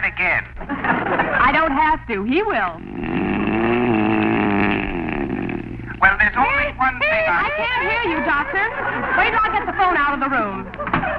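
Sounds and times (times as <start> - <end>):
speech: 0.2 - 1.3, 2.0 - 3.2, 6.0 - 11.1
laughter: 0.6 - 1.7, 6.7 - 11.1
roaring mouth-breathing intake: 2.7 - 6.1.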